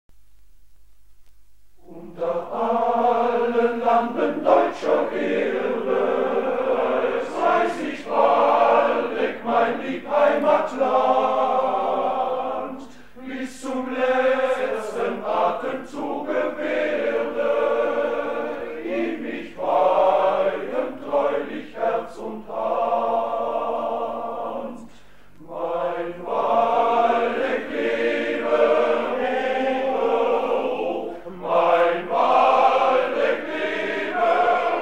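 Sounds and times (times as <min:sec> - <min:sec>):
hymn: 0:01.8 - 0:34.7.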